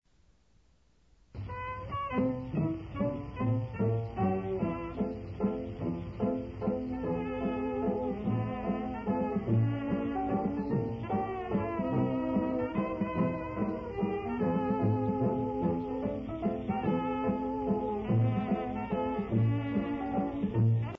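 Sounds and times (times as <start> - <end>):
waltz music: 1.4 - 20.9.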